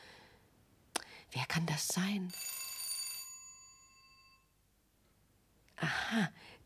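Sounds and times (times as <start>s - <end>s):
speech: 1.3s - 2.4s, 5.9s - 6.6s
doorbell ringing: 2.3s - 4.5s.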